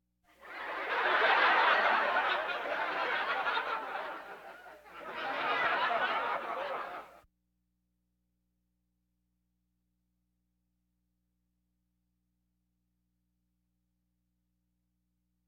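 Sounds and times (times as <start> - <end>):
audience laughter: 0.4 - 7.2.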